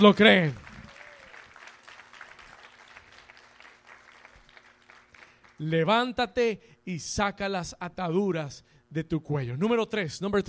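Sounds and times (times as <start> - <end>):
speech: 0.0 - 0.6, 5.6 - 10.4
audience applause: 0.0 - 5.6.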